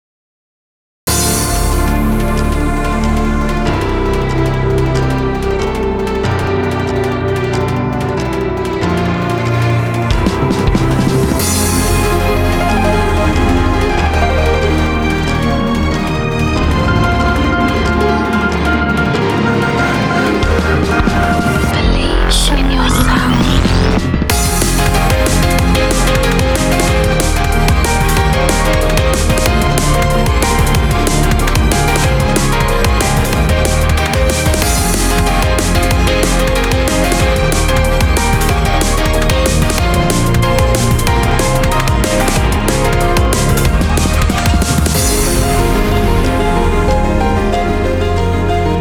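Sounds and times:
piano remix: 0:01.1 - 0:48.7.

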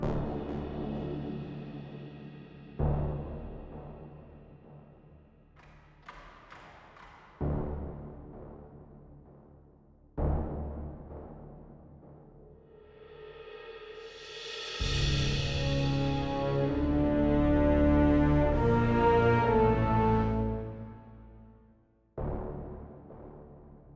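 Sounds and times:
level music ambience: 0:00.0 - 0:04.2, 0:14.8 - 0:23.8.

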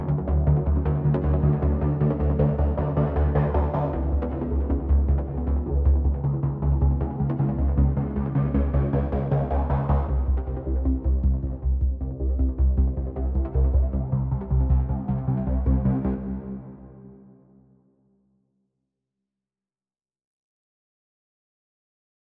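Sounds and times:
bass: 0:00.0 - 0:17.5.

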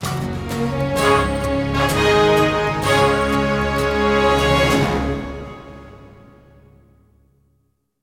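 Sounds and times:
combat victory jingle: 0:00.4 - 0:06.8.

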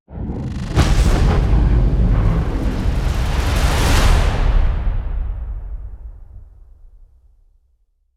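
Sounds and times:
modulated ramp stinger: 0:00.1 - 0:04.4.

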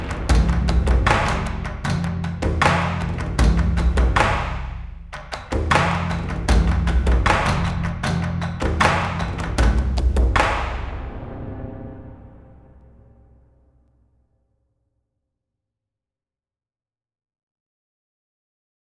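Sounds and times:
percussion: 0:00.0 - 0:13.4.

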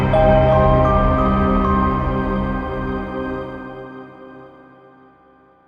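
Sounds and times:
game over jingle: 0:00.2 - 0:03.4.

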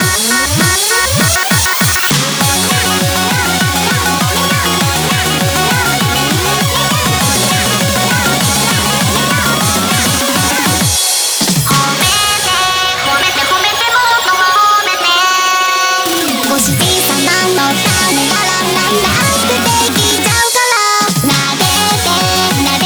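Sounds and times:
background music: 0:00.0 - 0:22.8.

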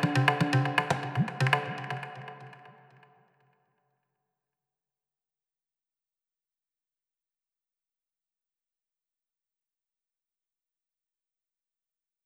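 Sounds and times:
ethnic music: 0:00.0 - 0:03.2.

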